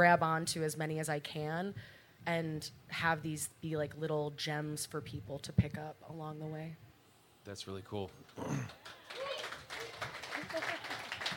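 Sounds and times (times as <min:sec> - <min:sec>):
speech: 0:00.0 - 0:09.0
crowd applause: 0:08.4 - 0:11.3.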